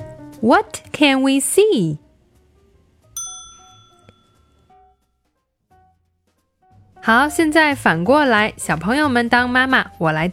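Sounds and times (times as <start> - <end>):
speech: 0.4 - 2.0, 7.0 - 10.3
ding chime cue: 3.2 - 4.7.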